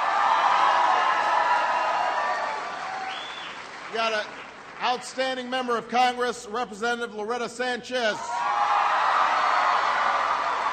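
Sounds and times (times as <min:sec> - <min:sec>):
scattered crowd shouts: 0:00.0 - 0:03.2, 0:08.2 - 0:10.7
large crowd applause: 0:00.0 - 0:05.4, 0:08.4 - 0:10.7
speech: 0:03.9 - 0:08.4.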